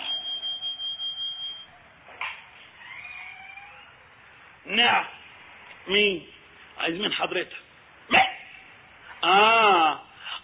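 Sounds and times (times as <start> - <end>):
electronic doorbell ringing: 0.0 - 1.7
speech: 4.7 - 5.2, 5.8 - 8.2, 9.2 - 10.0.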